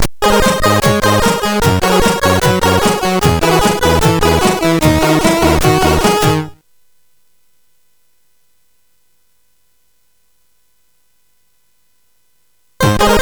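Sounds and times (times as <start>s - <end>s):
SID CSG8580R5 synthesized applause: 0.2s - 6.6s, 12.8s - 13.2s.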